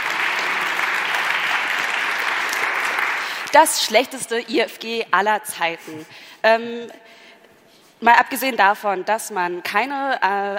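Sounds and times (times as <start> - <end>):
audience applause: 0.0 - 3.5
speech: 3.5 - 7.2, 8.0 - 10.5.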